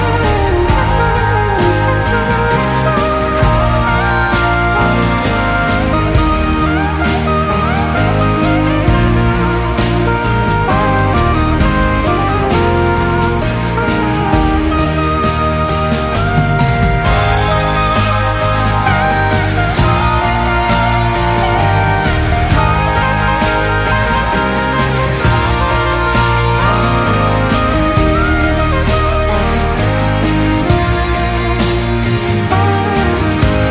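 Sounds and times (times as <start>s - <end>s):
saxophone music: 0.0s - 33.6s.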